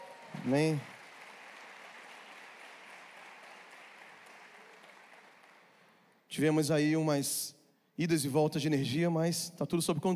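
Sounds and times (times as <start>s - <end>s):
audience applauding: 0.0s - 6.2s
speech: 0.4s - 0.9s, 6.3s - 10.1s.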